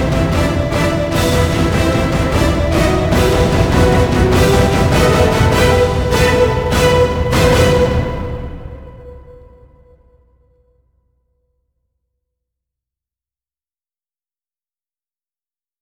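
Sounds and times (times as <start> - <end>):
music without choir: 0.0 - 10.9.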